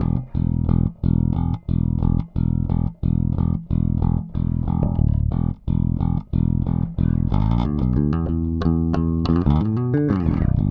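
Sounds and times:
rock bass guitar: 0.0 - 10.7.

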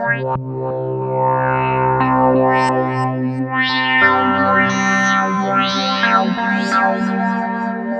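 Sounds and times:
synth: 0.0 - 7.9.

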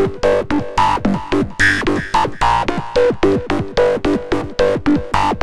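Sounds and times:
funk music: 0.2 - 5.3.

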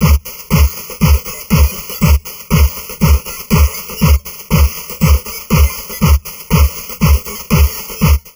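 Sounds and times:
heavily processed drum loop: 0.0 - 8.3.

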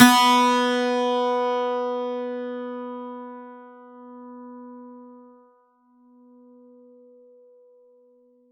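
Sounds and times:
plucked acoustic and electric twelve-string guitar: 0.0 - 4.9.

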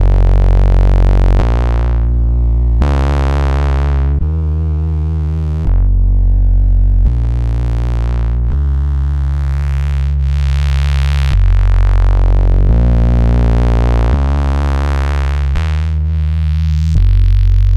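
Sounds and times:
bass loops: 0.0 - 17.7.

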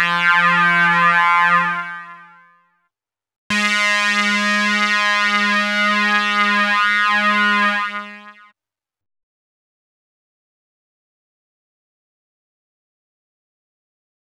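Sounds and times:
CS synth: 0.0 - 2.4, 3.5 - 8.5.

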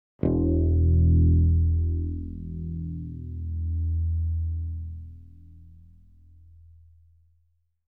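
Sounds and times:
bright bass note E1: 0.2 - 5.8.

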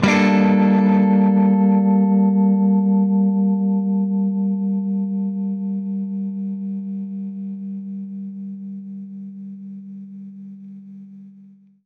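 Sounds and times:
baritone guitar G minor add9 chord: 0.0 - 8.8.

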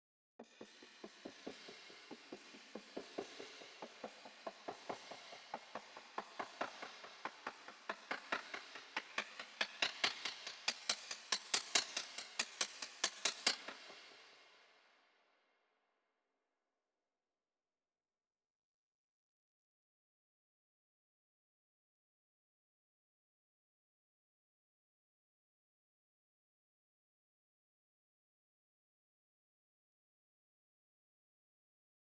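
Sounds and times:
140 BPM intro break drums and percussion: 0.4 - 14.4.

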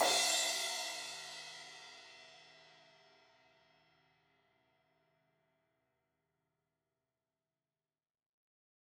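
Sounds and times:
16-inch crash cymbal hit on the edge: 0.0 - 1.1.

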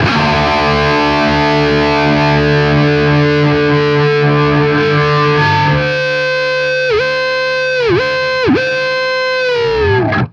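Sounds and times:
guitar power chord in D: 0.0 - 10.3.

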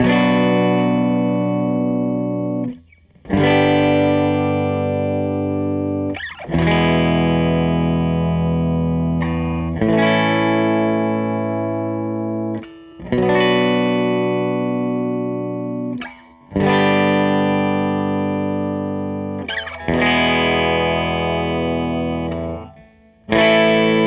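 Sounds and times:
SG electric guitar loop: 0.0 - 24.0.

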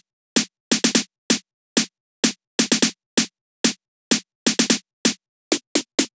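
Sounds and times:
drum loop: 0.4 - 1.0, 2.6 - 2.9, 3.6 - 6.1.

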